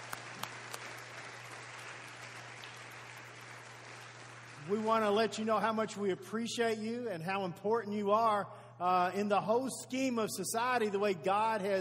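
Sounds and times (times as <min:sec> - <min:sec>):
audience applause: 0:00.0 - 0:05.2
low steady hum: 0:00.0 - 0:11.7
speech: 0:04.6 - 0:11.7.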